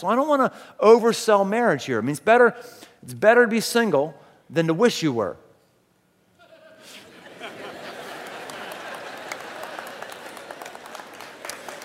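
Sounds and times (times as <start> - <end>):
speech: 0.0 - 5.4
laughter: 6.4 - 11.2
audience clapping: 7.6 - 11.8.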